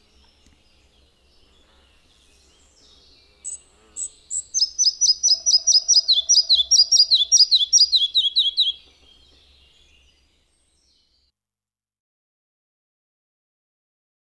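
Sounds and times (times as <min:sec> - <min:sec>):
red-breasted flycatcher song: 0:00.0 - 0:11.3.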